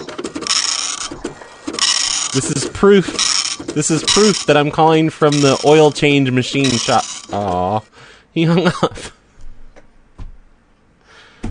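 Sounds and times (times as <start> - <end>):
dot matrix printer printing: 0.0 - 7.7
speech: 2.3 - 9.1.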